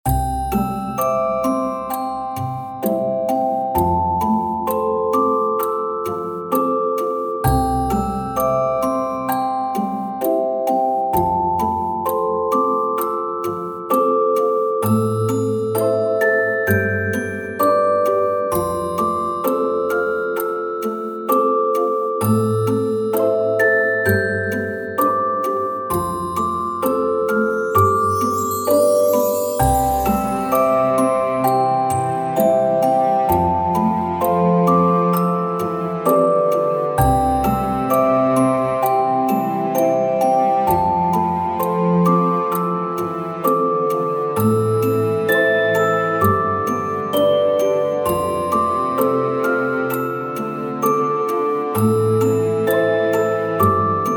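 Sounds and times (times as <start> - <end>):
Christmas Eve music track: 0.1 - 54.1.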